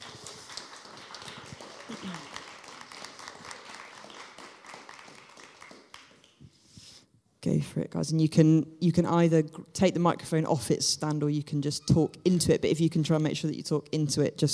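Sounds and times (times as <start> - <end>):
audience applause: 0.0 - 6.3
speech: 1.9 - 2.3, 7.5 - 14.5.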